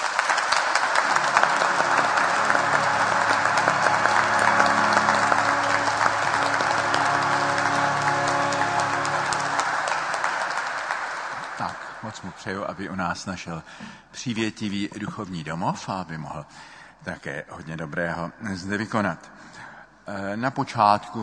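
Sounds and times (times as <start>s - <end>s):
sustained applause from a crowd welcoming a priest: 0.0s - 12.9s
speech: 12.4s - 21.2s.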